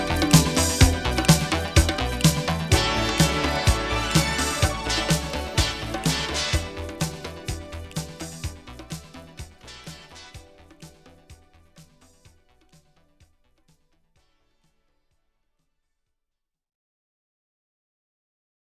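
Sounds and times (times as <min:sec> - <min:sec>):
instrumental music: 0:00.0 - 0:12.2.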